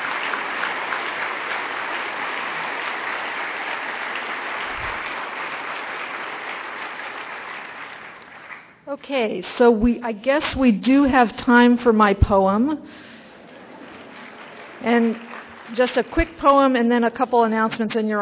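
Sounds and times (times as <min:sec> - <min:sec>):
audience applause for award winners: 0:00.0 - 0:08.8, 0:13.4 - 0:16.0
speech: 0:08.9 - 0:13.1, 0:14.8 - 0:18.1.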